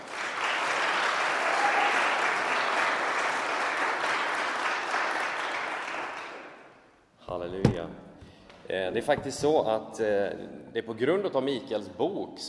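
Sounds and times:
audience applause: 0.0s - 6.6s
speech: 8.7s - 12.4s.

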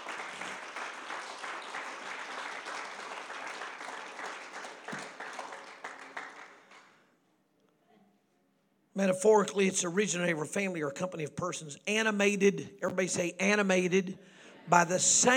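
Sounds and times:
audience clapping hands: 0.0s - 7.0s
speech: 9.0s - 15.3s.

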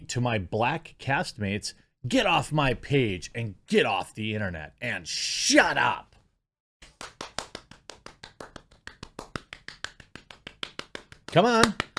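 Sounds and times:
speech: 0.1s - 6.1s, 11.3s - 11.9s
hand clapping: 6.8s - 11.9s.

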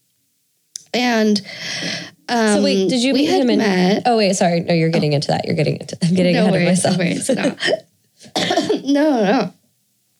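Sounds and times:
speech: 0.9s - 9.6s
laughter: 6.0s - 7.8s
small coughs: 7.2s - 9.0s.

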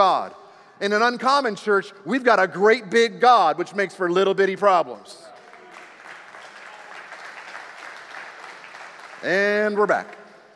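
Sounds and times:
speech: 0.0s - 5.3s, 9.2s - 10.2s
crowd clapping: 5.2s - 10.5s.

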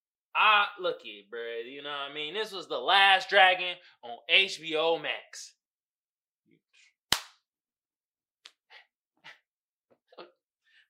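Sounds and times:
speech: 0.4s - 5.6s
hand clap: 7.1s - 7.4s.

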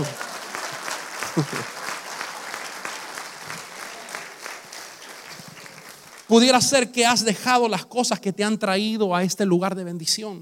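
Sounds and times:
audience applauding: 0.0s - 6.8s
speech: 1.4s - 1.8s, 6.3s - 10.4s.

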